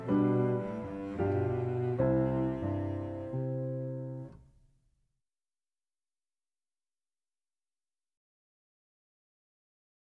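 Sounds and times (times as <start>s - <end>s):
cello: 0.0s - 4.4s
piano: 0.0s - 4.7s.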